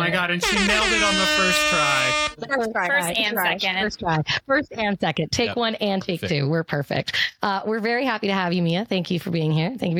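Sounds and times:
speech: 0.0 - 9.9
air horn blast: 0.4 - 2.4.

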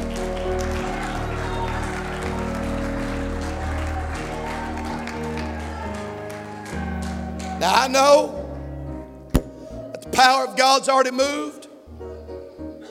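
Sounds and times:
audience clapping hands: 0.0 - 8.3
speech: 7.6 - 8.4, 10.2 - 11.6.

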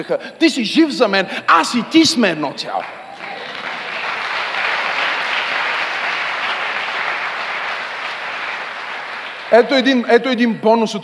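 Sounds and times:
speech: 0.0 - 3.0, 9.5 - 11.0
audience applause: 2.8 - 10.1.

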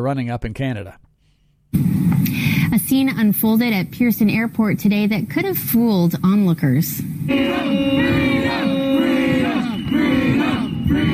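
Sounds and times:
speech: 0.0 - 1.0, 1.7 - 8.6
protesters yelling in mock emergency drill: 7.3 - 11.1.

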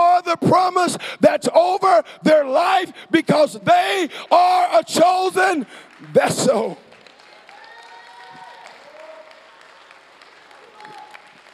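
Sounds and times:
speech: 0.4 - 6.8
audience clapping: 5.3 - 11.5.

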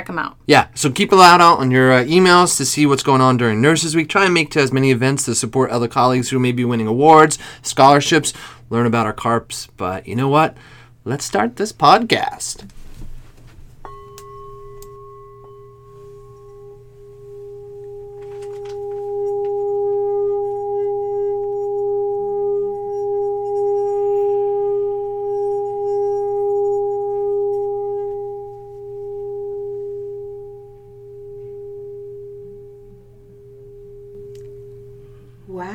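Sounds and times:
speech: 0.0 - 12.8
bell ringing: 13.8 - 35.4.

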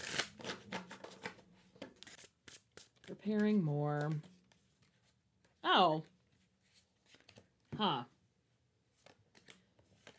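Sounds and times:
tarot cards being shuffled: 0.0 - 5.6, 6.3 - 7.6, 8.9 - 10.1
speech: 3.1 - 4.3, 5.7 - 6.1, 7.8 - 8.1.

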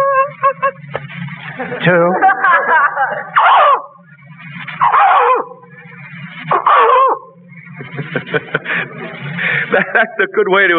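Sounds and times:
laughter: 0.1 - 3.9, 6.5 - 10.6
speech: 1.9 - 2.2, 10.0 - 10.7
man's voice imitating a barking dog: 3.4 - 3.9, 4.8 - 5.5, 6.5 - 7.3.

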